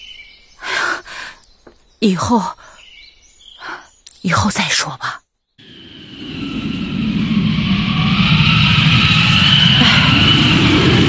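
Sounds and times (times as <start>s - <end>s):
speech: 2.0s - 2.6s, 4.2s - 5.2s
strong wind blowing: 5.6s - 11.0s.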